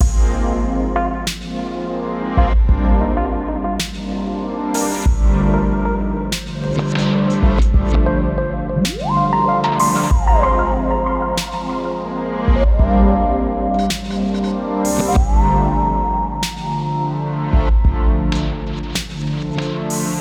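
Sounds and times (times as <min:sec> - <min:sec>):
background track in F at 95bpm: 0:00.0 - 0:20.1.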